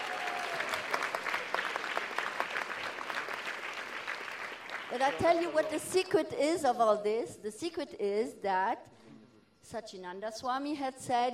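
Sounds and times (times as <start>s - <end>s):
audience applause: 0.0s - 5.7s
speech: 4.9s - 9.0s, 9.6s - 11.3s.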